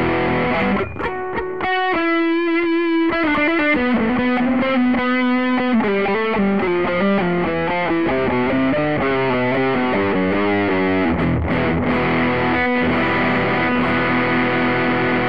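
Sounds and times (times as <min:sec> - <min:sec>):
electric guitar through a drive pedal with gain all the way up: 0:00.0 - 0:15.2.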